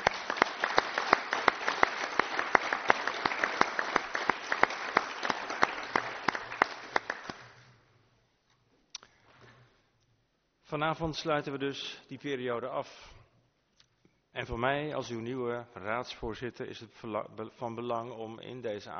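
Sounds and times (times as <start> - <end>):
audience applause: 0.0 - 7.6
speech: 10.7 - 13.2, 14.4 - 18.9.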